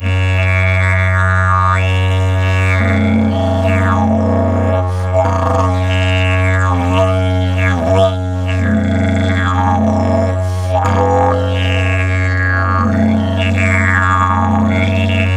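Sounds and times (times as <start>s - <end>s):
didgeridoo long drone in F#: 0.0s - 15.3s.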